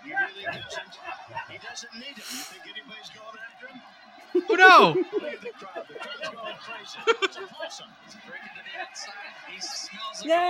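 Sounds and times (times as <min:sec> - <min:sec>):
stadium crowd cheering: 0:00.0 - 0:10.4
speech: 0:01.6 - 0:10.4
scattered higher shouts from stadium crowd: 0:04.4 - 0:05.0
laughter: 0:04.4 - 0:07.8.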